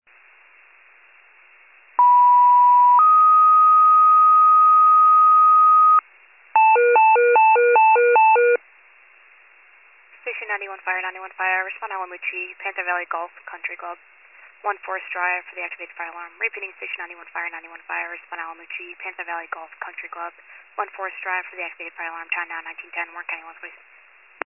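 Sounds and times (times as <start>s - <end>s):
fire pager alert: 2.0s - 6.0s, 6.6s - 8.6s.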